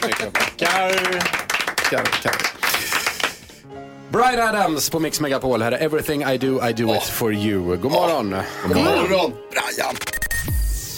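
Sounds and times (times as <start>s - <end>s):
applause from a small group: 0.0s - 3.6s
speech: 0.2s - 3.0s, 4.1s - 10.3s.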